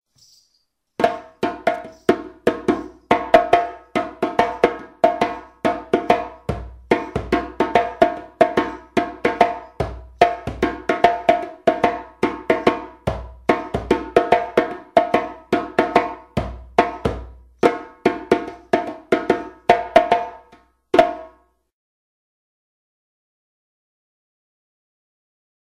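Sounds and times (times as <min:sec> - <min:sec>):
djembe playing a djansa rhythm: 0:01.0 - 0:21.4.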